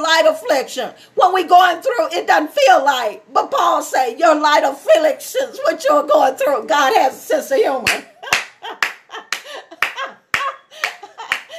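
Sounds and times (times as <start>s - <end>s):
speech: 0.2s - 8.4s
audience hand clapping: 7.9s - 11.5s.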